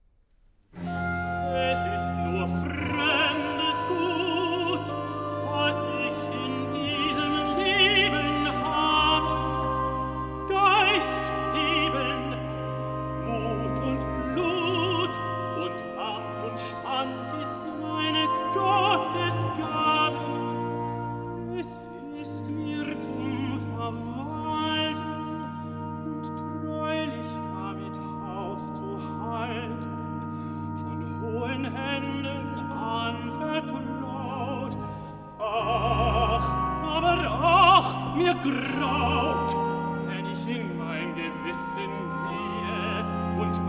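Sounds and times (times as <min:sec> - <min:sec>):
tenor singing recitative: 0:00.8 - 0:43.6.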